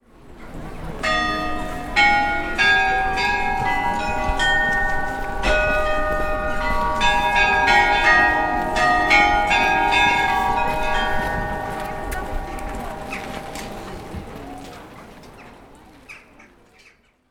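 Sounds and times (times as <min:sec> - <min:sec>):
chimes: 0:01.0 - 0:14.6.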